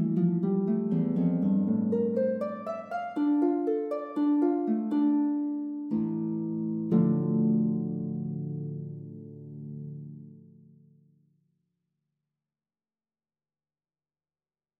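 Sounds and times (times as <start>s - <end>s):
prelude on lute: 0.0s - 10.7s.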